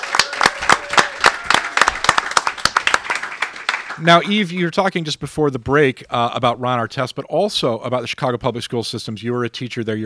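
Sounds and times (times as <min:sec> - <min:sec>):
audience applause welcoming a guest: 0:00.0 - 0:04.4
speech: 0:04.0 - 0:10.0.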